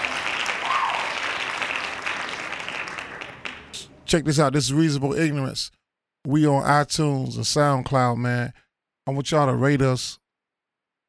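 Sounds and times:
hand clapping applause: 0.0s - 4.0s
speech: 4.1s - 10.2s.

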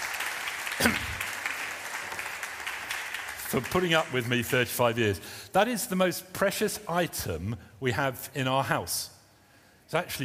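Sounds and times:
audience applause: 0.0s - 4.6s
speech: 0.8s - 1.1s, 3.5s - 9.2s, 9.9s - 10.2s.

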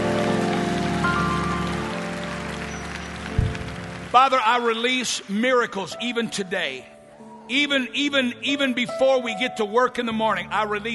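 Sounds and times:
audience clapping: 0.0s - 5.3s
speech: 4.1s - 6.9s, 7.5s - 10.9s.

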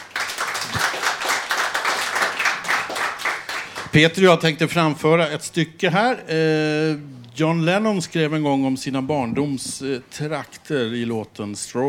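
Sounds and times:
crowd applauding: 0.0s - 4.0s
speech: 3.9s - 11.8s.

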